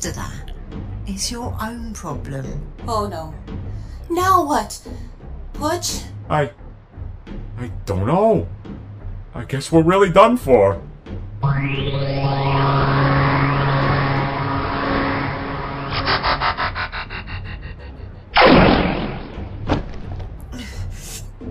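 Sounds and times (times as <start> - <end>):
speech: 0.0 - 6.6, 7.6 - 10.9, 11.5 - 13.1
sustained electronic whine: 11.4 - 17.5
fluttering electronic pulses: 11.4 - 19.4
gunshot in a robot adventure drama: 18.4 - 20.2.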